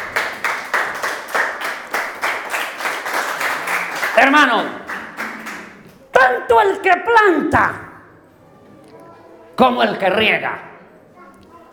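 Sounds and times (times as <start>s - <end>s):
audience clapping in a steady rhythm: 0.0s - 6.0s
speech: 4.2s - 4.8s, 6.2s - 7.8s, 9.6s - 10.7s.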